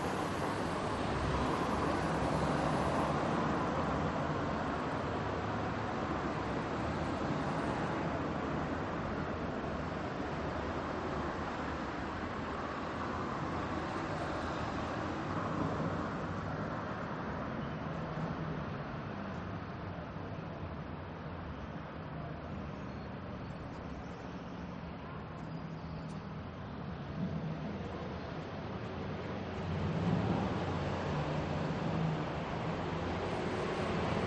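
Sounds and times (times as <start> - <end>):
tram passing by: 0.0 - 17.5, 26.7 - 34.2
daytime medium traffic heard from a balcony: 0.0 - 34.2.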